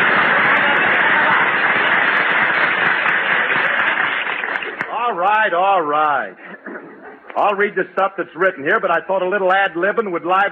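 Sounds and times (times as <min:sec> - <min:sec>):
studio audience applause: 0:00.0 - 0:05.3
speech: 0:05.4 - 0:06.6, 0:07.4 - 0:10.5
laughter: 0:06.3 - 0:07.8.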